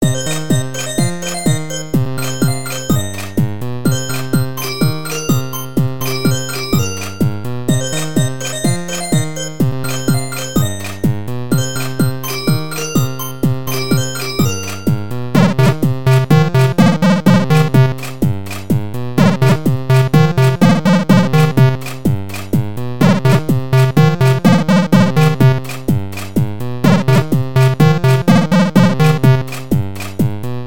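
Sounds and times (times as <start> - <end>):
music beat: 0.0 - 30.6.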